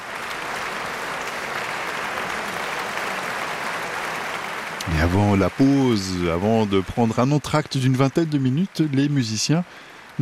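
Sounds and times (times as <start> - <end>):
concert audience applause in Basel: 0.0 - 10.1
speech: 4.9 - 10.1.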